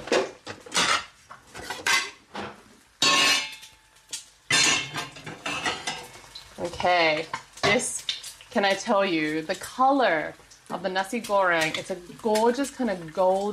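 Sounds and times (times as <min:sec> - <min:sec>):
plates clinking and clattering in a kitchen while serving nasi goreng: 0:00.0 - 0:03.8, 0:04.5 - 0:06.2
speech: 0:06.6 - 0:13.5.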